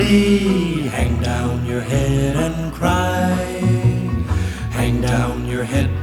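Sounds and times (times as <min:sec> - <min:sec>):
music: 0:00.0 - 0:06.0.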